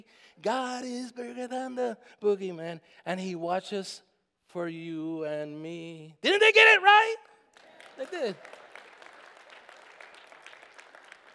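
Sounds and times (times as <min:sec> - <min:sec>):
speech: 0:00.4 - 0:07.2, 0:08.0 - 0:08.6
audience clapping: 0:07.5 - 0:11.3.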